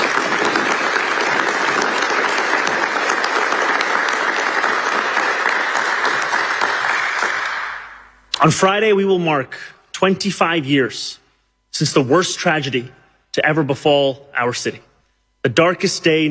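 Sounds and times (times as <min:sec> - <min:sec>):
round of applause: 0:00.0 - 0:08.2
speech: 0:08.4 - 0:16.2.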